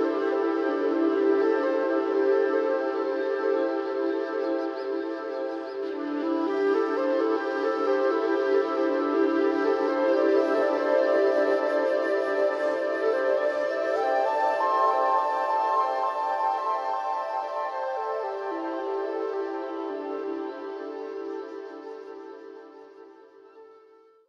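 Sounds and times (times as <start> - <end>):
flute with echo: 0.0 - 24.2.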